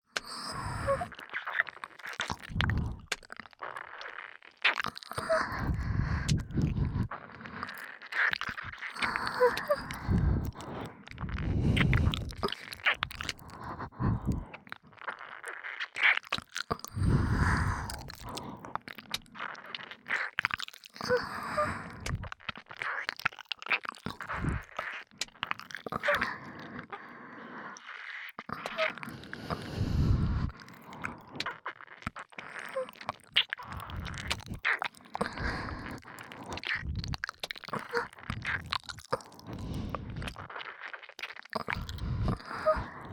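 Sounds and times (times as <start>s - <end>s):
breathing sounds in both ears: 0.1s - 1.2s, 2.4s - 3.2s, 4.9s - 15.7s, 16.6s - 19.8s, 21.0s - 22.4s, 24.1s - 24.9s, 25.9s - 31.8s, 32.4s - 40.9s, 41.6s - 43.1s
ear licking in both ears: 0.2s - 43.1s.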